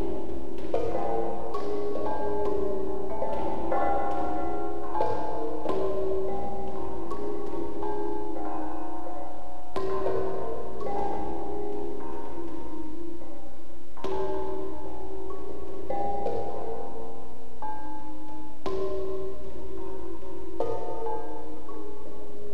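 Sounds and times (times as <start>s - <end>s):
bells: 0.0s - 22.5s.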